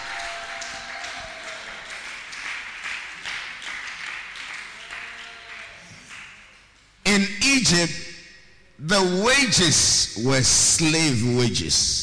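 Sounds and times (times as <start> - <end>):
audience clapping: 0.0 - 6.8
speech: 7.2 - 8.0, 8.8 - 12.0.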